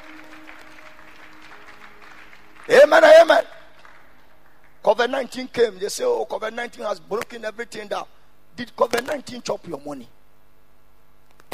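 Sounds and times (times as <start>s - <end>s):
audience clapping hands: 0.0s - 5.2s
speech: 2.7s - 3.6s, 4.8s - 10.2s.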